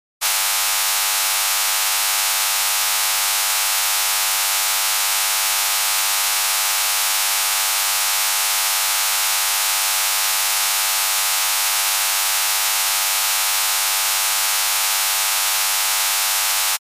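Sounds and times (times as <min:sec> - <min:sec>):
electronic signal: 0:00.2 - 0:16.8.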